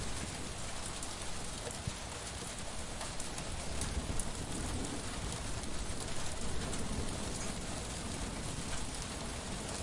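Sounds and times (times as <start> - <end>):
rain: 0.0 - 9.8
wind: 0.0 - 9.8
thunder: 3.7 - 9.8.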